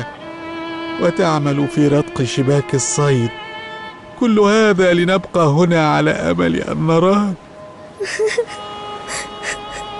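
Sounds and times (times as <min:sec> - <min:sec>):
speech: 0:01.0 - 0:03.5, 0:04.2 - 0:07.4
people crying: 0:08.0 - 0:09.9.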